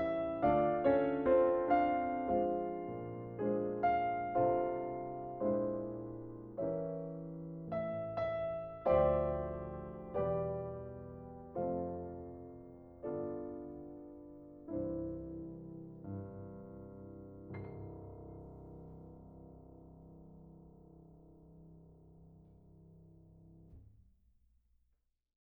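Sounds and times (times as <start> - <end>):
Christmas song: 0.0 - 16.5.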